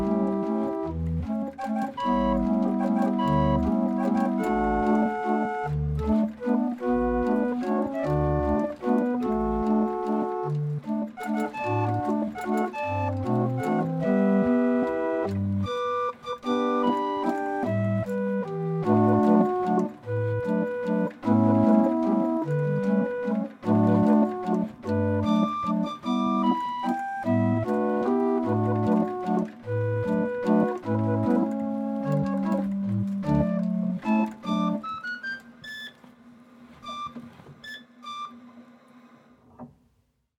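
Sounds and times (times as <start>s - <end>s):
barrel organ playing a waltz: 0.0s - 36.0s.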